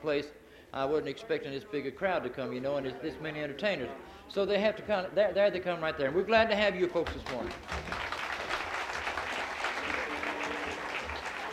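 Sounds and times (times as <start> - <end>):
speech: 0.0 - 8.0
audience applause: 7.0 - 11.5.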